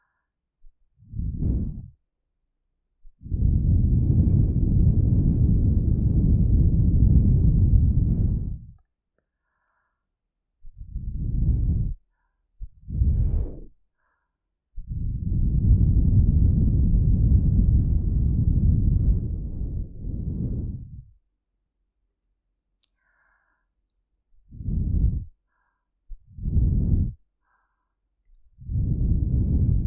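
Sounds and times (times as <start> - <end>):
blowing through a straw into ears: 1.1 - 1.9, 3.2 - 8.8, 10.8 - 12.0, 12.7 - 13.7, 14.8 - 21.1, 24.5 - 25.4, 26.1 - 27.2, 28.6 - 29.8.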